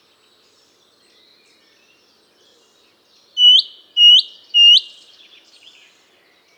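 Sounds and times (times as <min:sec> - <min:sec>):
loud upslurred bird whistles: 0:03.4 - 0:04.9.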